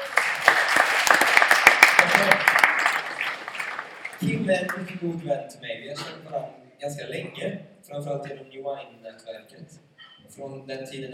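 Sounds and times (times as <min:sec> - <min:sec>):
audience applause: 0:00.0 - 0:05.1
speech: 0:04.2 - 0:11.1.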